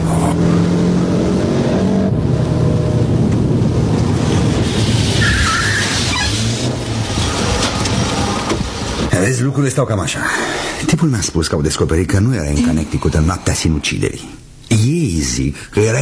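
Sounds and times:
car driving, engine and road noise: 0.0 - 9.2
speech: 9.2 - 16.0.

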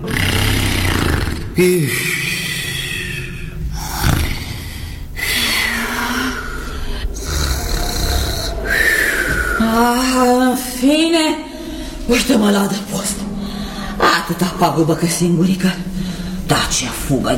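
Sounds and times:
bear growling and snorting: 0.0 - 10.1
speech: 1.6 - 2.2, 9.8 - 11.4, 12.1 - 12.9, 14.3 - 17.3.

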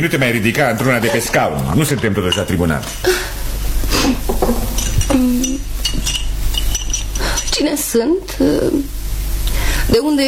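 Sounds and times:
speech: 0.0 - 3.4, 4.1 - 5.2, 7.6 - 9.0, 9.9 - 10.2
low steady hum: 0.0 - 10.2
cup and dishes clinking: 1.0 - 3.0, 4.3 - 7.6.

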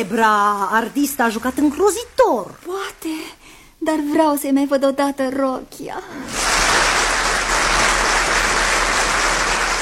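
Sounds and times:
speech: 0.0 - 6.5
audience applause for actors: 6.3 - 9.7.

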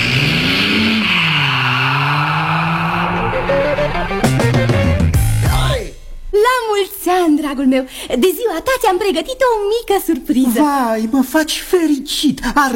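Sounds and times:
tires screeching in a loud skid: 0.0 - 5.1
car engine revving: 0.0 - 5.6
speech: 7.4 - 12.7.

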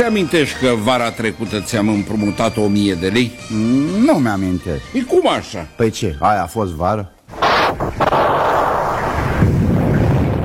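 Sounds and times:
speech: 0.0 - 7.2
thunder: 7.4 - 10.4.

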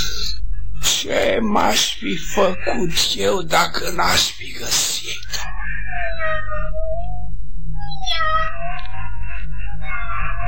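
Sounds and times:
speech: 1.0 - 5.5
cat meowing: 5.3 - 10.4.

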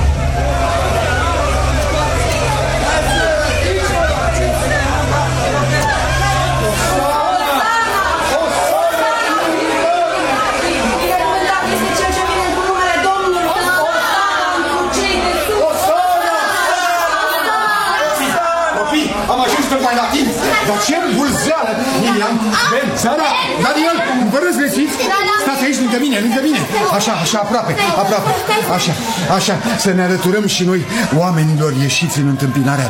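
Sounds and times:
crowd of people shouting: 0.0 - 32.8
speech: 27.3 - 32.8.

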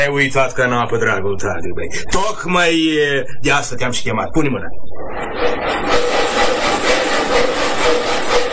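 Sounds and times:
speech: 0.0 - 6.1
two-man bow saw sawing wood: 5.4 - 8.5.

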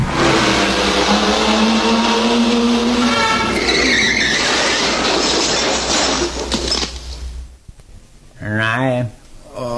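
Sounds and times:
car tires screeching in a skid: 0.0 - 7.0
car engine rumbling: 0.0 - 7.6
voice: 8.4 - 9.7.

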